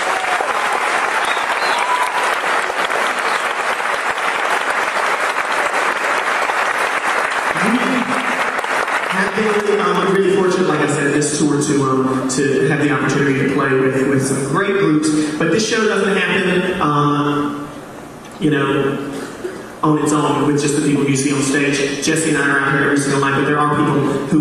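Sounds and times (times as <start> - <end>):
audience applause: 0.0 - 10.7
speech: 11.4 - 17.6, 18.4 - 19.2, 19.8 - 24.4.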